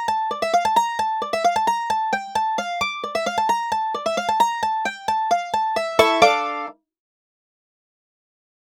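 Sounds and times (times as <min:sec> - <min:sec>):
mandolin: 0:00.0 - 0:06.8.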